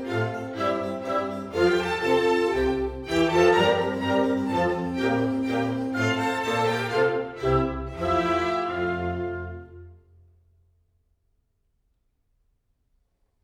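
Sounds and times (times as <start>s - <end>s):
minuet: 0.0s - 10.0s.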